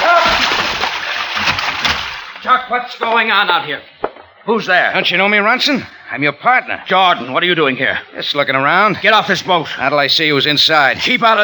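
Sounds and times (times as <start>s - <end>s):
man falling overboard into river water: 0.0s - 2.4s
speech: 2.5s - 11.4s.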